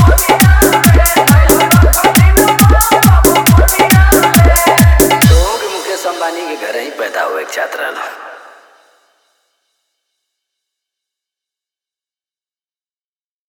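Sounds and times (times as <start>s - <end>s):
hard bass dance mix: 0.0s - 7.5s.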